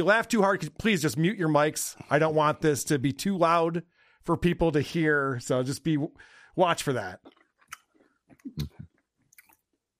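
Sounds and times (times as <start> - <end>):
speech: 0.0 - 7.4, 8.4 - 8.8
person chewing a chicken cutlet: 7.2 - 9.9.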